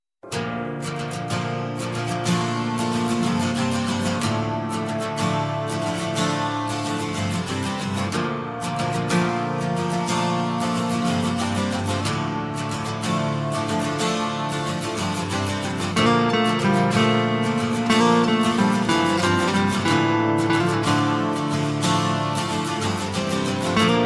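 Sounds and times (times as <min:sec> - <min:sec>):
acoustic guitar: 0:00.2 - 0:24.0.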